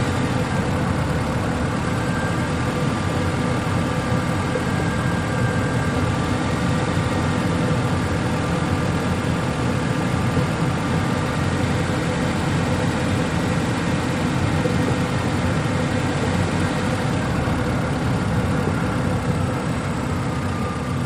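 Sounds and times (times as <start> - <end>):
compact small car driving at 25 to 35 mph: 0.0 - 21.0.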